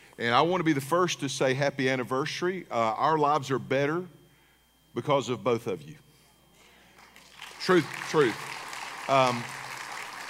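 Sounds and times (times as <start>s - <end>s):
speech: 0.2s - 4.2s, 5.0s - 6.0s, 7.6s - 8.5s, 9.1s - 9.6s
thin scattered applause from a small audience: 7.0s - 10.2s.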